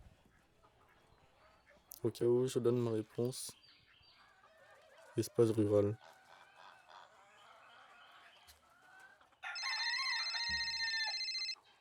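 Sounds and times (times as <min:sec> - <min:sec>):
speech: 0:02.0 - 0:03.6, 0:05.2 - 0:06.2
alarm clock ringing: 0:09.6 - 0:11.6.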